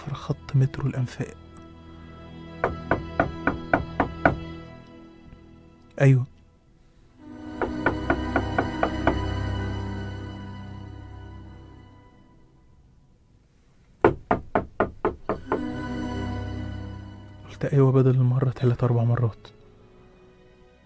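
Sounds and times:
low steady hum: 0.0s - 14.0s, 14.8s - 20.8s
speech: 0.3s - 1.4s, 6.0s - 6.3s, 17.7s - 19.6s
knocking on a door: 2.6s - 4.4s, 7.6s - 9.3s, 14.0s - 15.6s.

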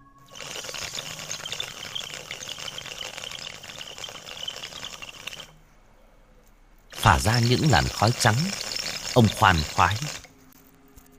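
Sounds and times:
bubbling of a bamboo water pipe: 0.3s - 5.6s, 6.9s - 10.3s
speech: 7.1s - 10.2s.

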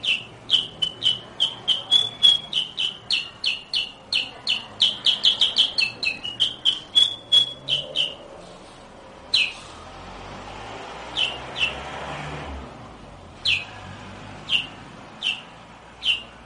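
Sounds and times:
sooty-headed bulbul chirping rapidly: 0.0s - 8.3s, 9.3s - 9.7s, 11.1s - 11.8s, 13.4s - 13.8s, 14.4s - 16.4s.

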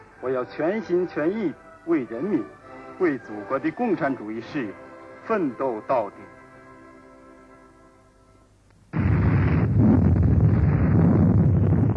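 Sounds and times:
speech: 0.2s - 6.4s
continuous explosions on a hilltop: 8.9s - 11.9s.

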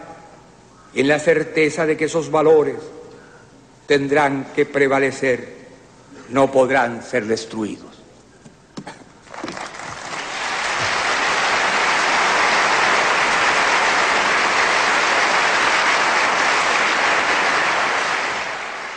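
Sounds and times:
speech: 0.9s - 3.0s, 3.9s - 5.6s, 6.3s - 7.9s
large crowd applauding after a speech: 9.2s - 18.9s.

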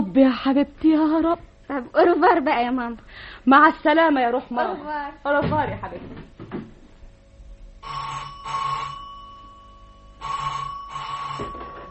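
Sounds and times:
speech: 0.2s - 6.3s
telephone ringing: 7.8s - 11.8s.

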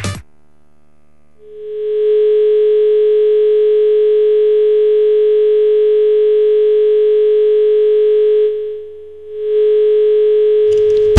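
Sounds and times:
telephone dial tone while trying to place a call: 1.5s - 8.8s, 9.4s - 11.1s.

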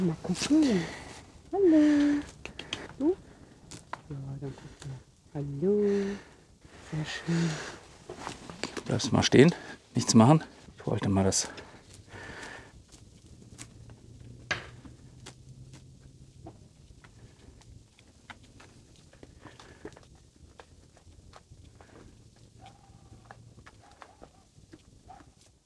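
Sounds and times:
speech: 0.0s - 3.2s, 4.1s - 6.3s, 6.9s - 11.7s
alpaca chewing: 0.0s - 5.1s, 11.5s - 25.6s.

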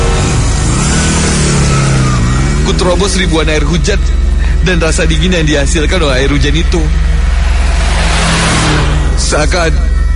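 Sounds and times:
car engine accelerating hard: 0.0s - 10.1s
speech: 2.7s - 7.8s, 9.2s - 9.9s.

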